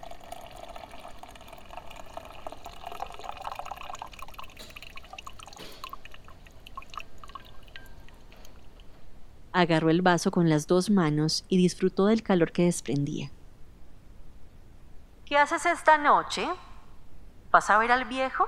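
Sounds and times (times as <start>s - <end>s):
coffee machine pouring hot coffee into a cup: 0.0s - 8.9s
coffee dripping: 0.0s - 9.0s
speech: 9.6s - 13.4s, 15.3s - 16.6s, 17.5s - 18.4s.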